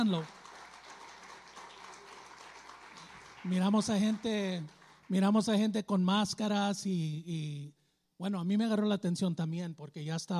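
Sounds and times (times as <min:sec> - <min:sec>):
speech: 0:00.0 - 0:00.4, 0:03.4 - 0:10.3
audience applause: 0:00.0 - 0:05.4.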